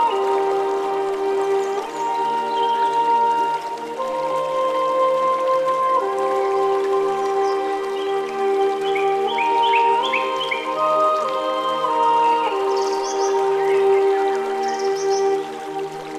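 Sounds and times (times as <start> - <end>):
relaxing forest ambience: 0.0 - 16.1.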